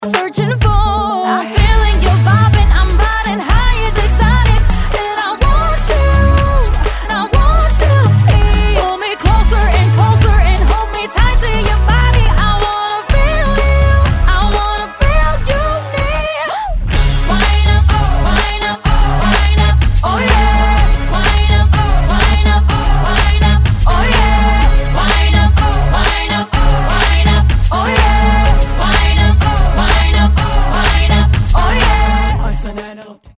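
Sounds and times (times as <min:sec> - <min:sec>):
dancehall music: 0:00.0 - 0:33.3.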